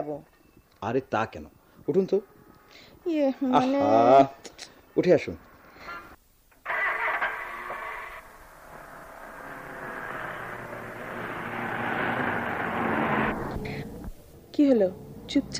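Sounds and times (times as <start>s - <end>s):
speech: 0.0s - 5.5s, 14.8s - 15.5s
car engine running while driving on city roads in Dhaka: 0.9s - 3.1s, 6.6s - 15.5s.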